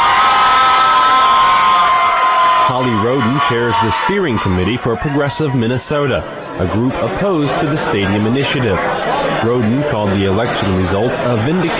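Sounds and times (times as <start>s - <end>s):
whoops from an election-night crowd: 0.0s - 4.4s
election-night crowd cheering and applauding loudly after a concession speech: 0.0s - 5.8s
speech: 2.8s - 11.7s.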